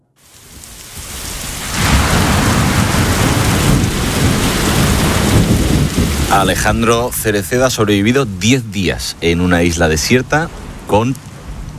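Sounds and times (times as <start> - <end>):
heavy rain: 0.0 - 11.7
thunder: 0.5 - 7.2
speech: 6.3 - 11.3.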